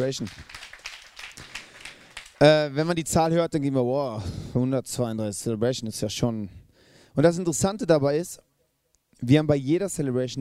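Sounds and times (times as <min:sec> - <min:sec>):
speech: 0:00.0 - 0:00.7, 0:02.4 - 0:06.6, 0:07.2 - 0:08.5, 0:09.2 - 0:10.3
crowd clapping: 0:00.0 - 0:02.6.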